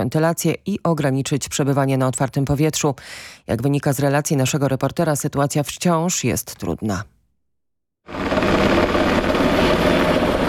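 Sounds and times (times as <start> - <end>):
speech: 0.0 - 7.2
Black Hawk helicopter flying overhead: 8.1 - 10.4.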